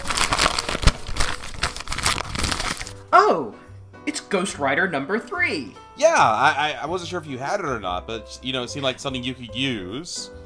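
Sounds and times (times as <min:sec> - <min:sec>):
gift wrapping paper being torn and unwrapped: 0:00.0 - 0:03.0
speech: 0:03.2 - 0:10.4.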